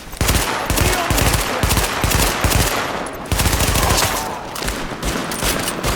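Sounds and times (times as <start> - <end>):
gunfire from an in-game firefight: 0.0 - 5.9.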